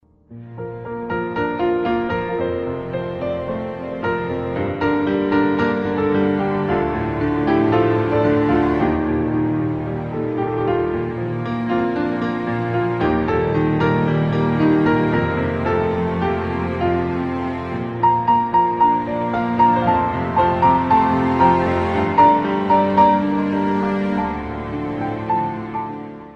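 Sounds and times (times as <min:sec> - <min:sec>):
beautiful piano music: 0:00.0 - 0:26.3.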